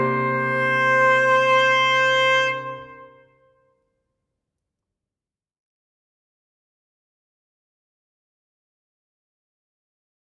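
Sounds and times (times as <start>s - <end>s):
saxophone: 0.0s - 3.5s.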